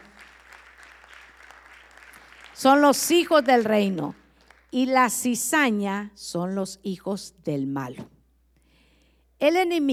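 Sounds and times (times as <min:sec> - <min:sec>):
audience applause: 0:00.0 - 0:04.7
speech: 0:02.6 - 0:08.2, 0:09.4 - 0:09.9.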